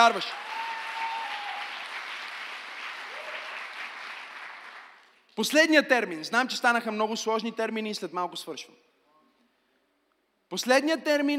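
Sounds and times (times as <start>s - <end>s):
speech: 0.0s - 0.5s, 5.4s - 8.9s, 10.5s - 11.3s
audience clapping: 0.0s - 5.4s
person whooping: 0.3s - 1.8s.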